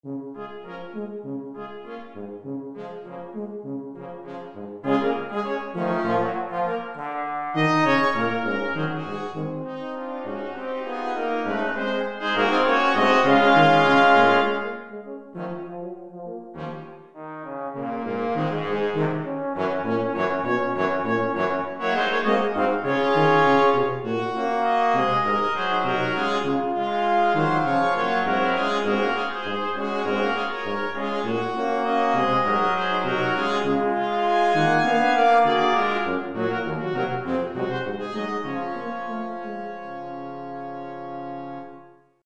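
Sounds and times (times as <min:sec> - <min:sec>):
brass quintet playing: 0:00.0 - 0:42.2.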